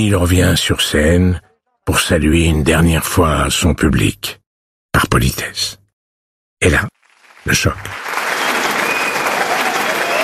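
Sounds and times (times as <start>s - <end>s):
speech: 0.0s - 4.4s, 5.0s - 5.8s, 6.6s - 8.0s
standing ovation applause: 7.0s - 10.2s.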